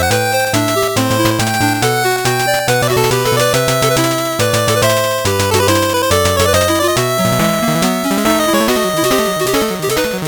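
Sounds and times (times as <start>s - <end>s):
8-bit background music: 0.0s - 10.2s.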